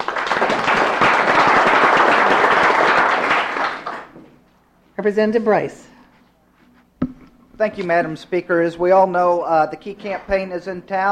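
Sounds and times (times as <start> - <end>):
audience applause in a legislative chamber: 0.0 - 4.2
speech: 5.0 - 5.9, 7.6 - 11.1.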